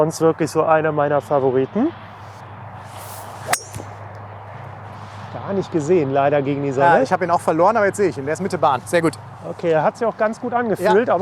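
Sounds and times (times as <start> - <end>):
speech: 0.0 - 2.1, 5.5 - 11.2
golf ball struck with a 3-wood: 2.2 - 5.1.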